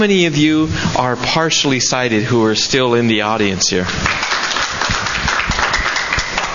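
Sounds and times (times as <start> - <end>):
speech: 0.0 - 4.5
audience applause at a talk: 4.0 - 6.5.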